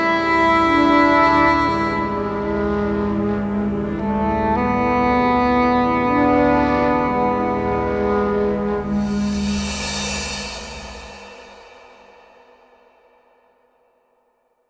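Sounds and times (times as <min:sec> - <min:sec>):
oboe playing a shuffle rhythm: 0:00.2 - 0:11.1.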